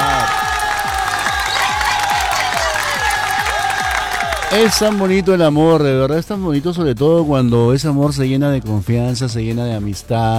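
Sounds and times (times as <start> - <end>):
applause: 0.0 - 5.6
cheering: 0.0 - 5.8
speech: 4.5 - 10.3.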